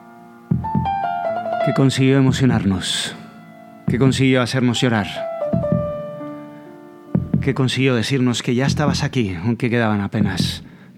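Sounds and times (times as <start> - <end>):
fetal heartbeat on an ultrasound doppler: 0.5 - 1.0, 5.6 - 6.1, 7.2 - 7.6, 10.2 - 10.8
speech: 1.6 - 3.2, 3.9 - 5.3, 7.4 - 10.7.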